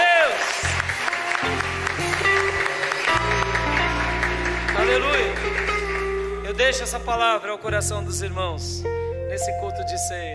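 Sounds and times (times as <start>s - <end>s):
audience applauding: 0.0s - 7.1s
speech: 6.7s - 10.3s.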